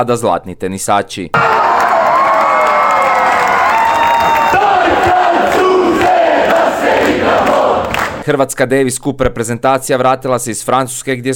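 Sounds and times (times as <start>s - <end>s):
speech: 0.0s - 1.6s, 8.3s - 11.3s
crowd cheering on Zagreb's main square: 1.4s - 8.2s
crowd singing on Zagreb's main square: 4.4s - 8.2s.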